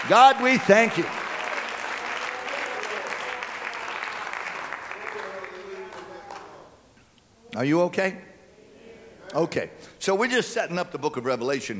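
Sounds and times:
audience clapping hands: 0.0 - 6.7
speech: 0.1 - 1.2, 7.5 - 8.3, 9.3 - 11.7.

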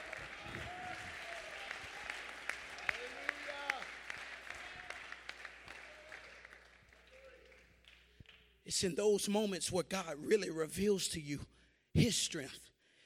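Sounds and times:
audience clapping: 0.0 - 8.6
speech: 8.8 - 12.7.

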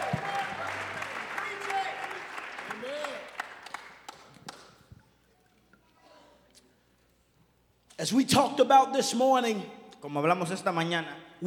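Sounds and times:
audience clapping hands: 0.0 - 5.0
speech: 8.0 - 11.4.

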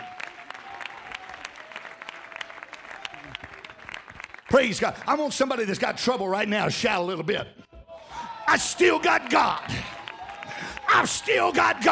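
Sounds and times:
audience clapping hands: 0.0 - 5.7, 8.5 - 11.9
speech: 4.5 - 7.6, 8.5 - 10.0, 11.0 - 11.9.

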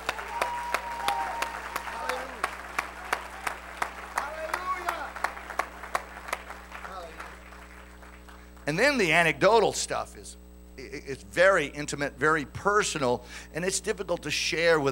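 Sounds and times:
audience clapping: 0.0 - 8.8
speech: 8.7 - 14.9.

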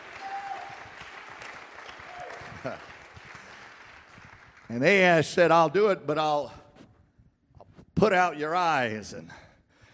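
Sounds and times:
audience clapping: 0.0 - 5.2
speech: 2.6 - 2.9, 4.7 - 6.6, 8.0 - 9.4.

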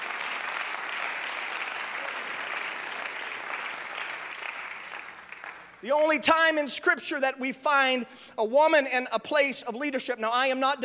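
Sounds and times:
audience clapping hands: 0.0 - 6.0
speech: 5.8 - 10.8.

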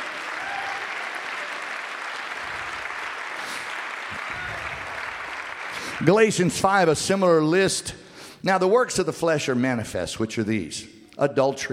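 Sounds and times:
audience clapping hands: 0.0 - 7.0
speech: 6.0 - 11.7.

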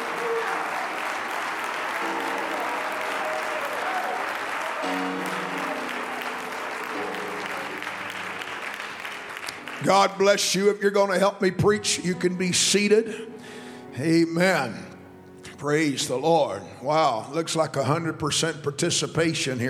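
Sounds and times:
audience clapping hands in praise: 0.0 - 10.9
organ or keyboard tones: 0.0 - 19.3
speech: 9.8 - 13.3, 14.0 - 14.9, 15.6 - 19.6.

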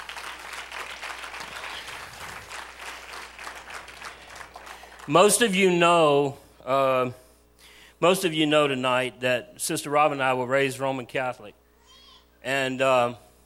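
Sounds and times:
audience applause: 0.0 - 5.4
speech: 5.1 - 7.2, 8.0 - 11.6, 12.4 - 13.2.

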